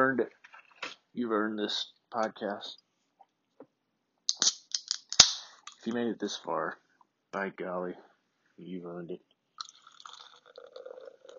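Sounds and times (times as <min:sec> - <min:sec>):
speech: 0:00.1 - 0:02.8, 0:05.8 - 0:09.3
seltzer being poured into a cup: 0:09.6 - 0:11.3.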